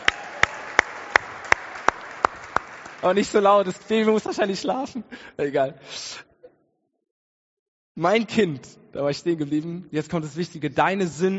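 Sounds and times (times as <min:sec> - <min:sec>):
audience applause: 0:00.0 - 0:04.1
speech: 0:03.0 - 0:06.3, 0:08.0 - 0:11.3.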